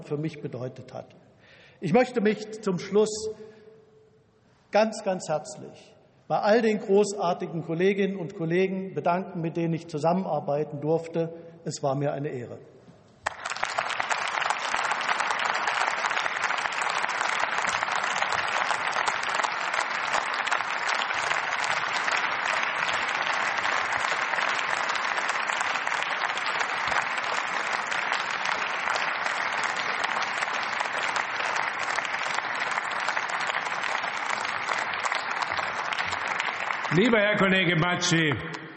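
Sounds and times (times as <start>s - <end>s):
speech: 0.1s - 3.6s, 4.7s - 12.7s, 37.1s - 38.6s
applause in parliament: 13.2s - 38.7s.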